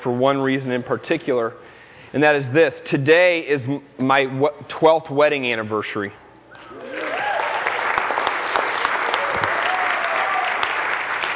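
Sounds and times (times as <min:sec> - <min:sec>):
speech: 0:00.0 - 0:06.8
cheers: 0:06.6 - 0:11.3
audience applause: 0:06.7 - 0:11.3.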